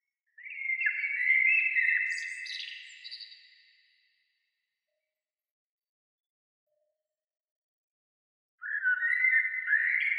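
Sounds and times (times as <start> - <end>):
bird singing twittering phrases: 0.3 - 4.0, 8.6 - 10.1.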